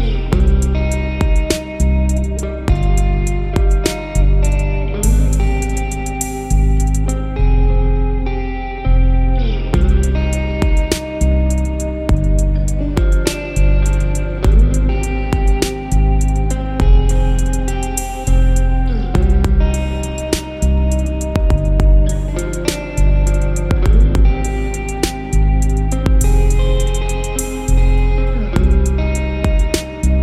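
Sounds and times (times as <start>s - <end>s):
guitar: 0.0s - 30.2s
drums: 0.4s - 1.7s, 9.8s - 12.4s, 13.0s - 18.3s, 19.2s - 20.4s, 22.7s - 25.3s, 26.1s - 27.7s, 28.6s - 29.8s.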